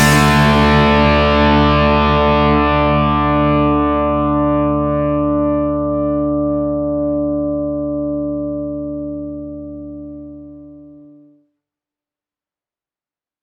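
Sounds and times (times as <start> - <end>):
band playing: 0.0 - 2.7
vintage crunch electric guitar through mic preamp: 0.0 - 11.0.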